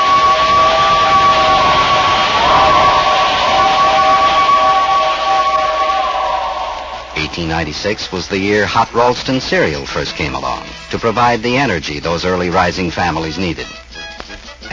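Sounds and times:
passing train roar: 0.0s - 9.0s
train horn-like tones: 0.0s - 11.4s
speech: 7.6s - 13.8s.

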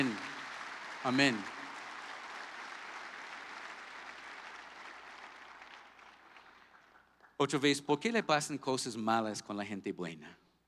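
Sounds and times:
speech: 0.0s - 0.2s, 1.0s - 1.6s, 7.4s - 10.4s
audience applause: 0.0s - 7.3s.

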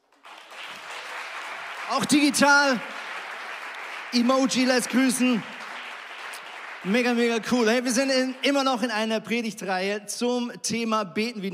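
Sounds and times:
audience applause: 0.0s - 9.2s
speech: 1.9s - 2.9s, 4.1s - 5.5s, 6.8s - 11.5s.

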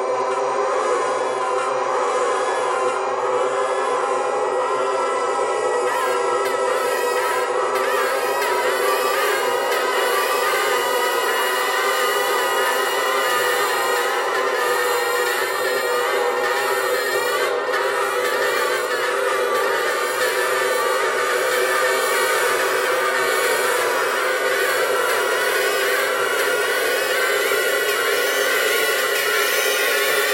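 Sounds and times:
bagpipe: 0.0s - 30.3s.

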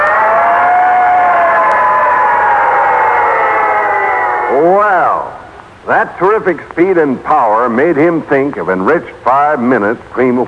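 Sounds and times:
fire engine roaring past with siren: 0.0s - 4.7s
speech: 5.9s - 10.4s.

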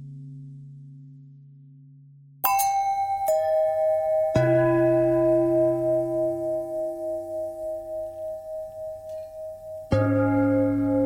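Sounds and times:
long bell ringing: 2.4s - 10.9s.

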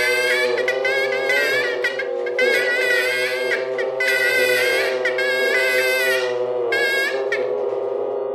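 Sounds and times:
geese: 0.0s - 8.1s
bagpipe: 0.0s - 8.2s.

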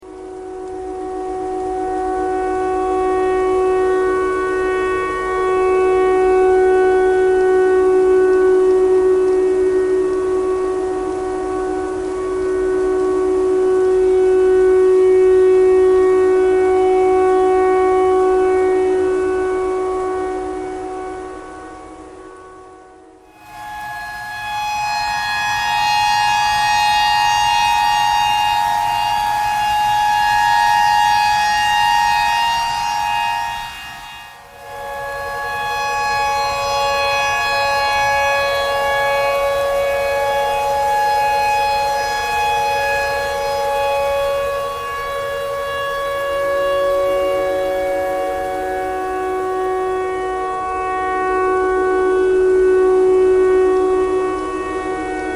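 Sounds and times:
tornado siren: 0.0s - 55.3s.

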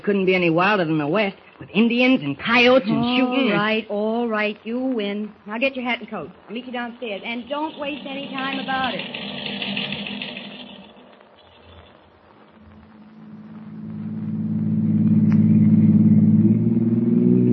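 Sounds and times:
speech: 0.0s - 9.5s
taxi engine humming: 6.5s - 11.6s, 12.8s - 17.5s.

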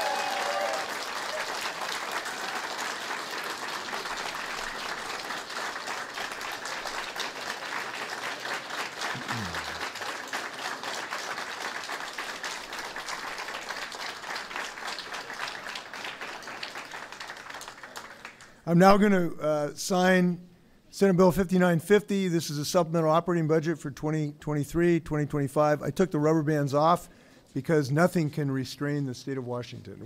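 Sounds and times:
audience applause: 0.0s - 18.5s
speech: 18.7s - 30.0s.

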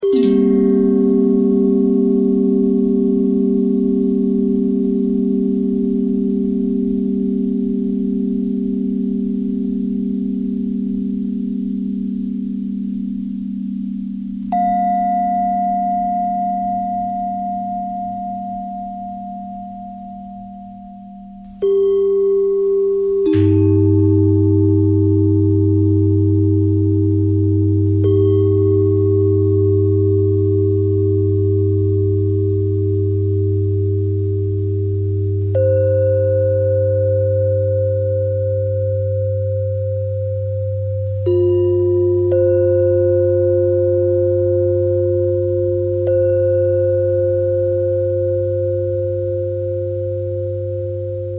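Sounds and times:
bell: 0.0s - 51.3s.

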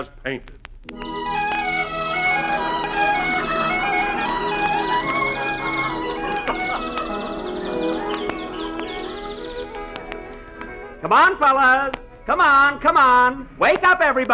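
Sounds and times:
speech: 0.0s - 1.2s, 11.0s - 14.3s
laughter: 1.1s - 12.3s
birds twittering in giant redwoods at sunrise: 2.4s - 11.2s.

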